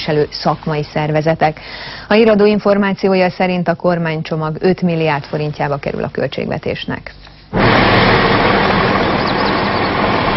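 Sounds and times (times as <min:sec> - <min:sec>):
speech: 0:00.0 - 0:08.2
several trucks idling at a haulage depot: 0:07.5 - 0:10.3.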